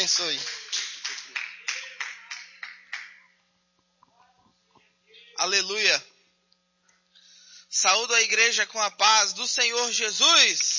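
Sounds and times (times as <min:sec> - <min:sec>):
audience clapping: 0:00.0 - 0:03.4
speech: 0:00.1 - 0:00.6, 0:05.4 - 0:06.1, 0:07.7 - 0:10.7.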